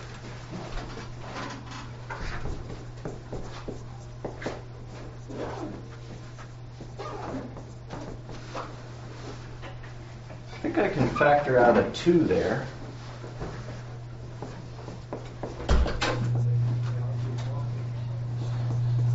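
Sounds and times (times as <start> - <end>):
hand writing out equations: 2.2 - 8.7
speech: 10.8 - 12.8
low hum: 15.8 - 19.1.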